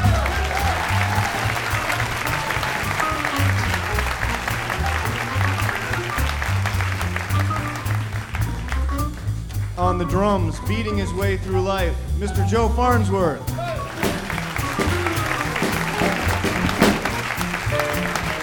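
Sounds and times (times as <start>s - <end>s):
audience applause: 0.0s - 9.3s, 13.6s - 18.4s
speech: 10.0s - 13.6s.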